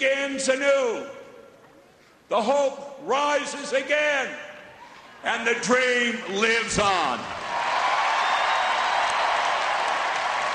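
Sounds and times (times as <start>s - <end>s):
speech: 0.0s - 1.2s, 2.3s - 4.4s, 5.2s - 7.4s
huge convention crowd cheering and applauding: 7.3s - 10.5s.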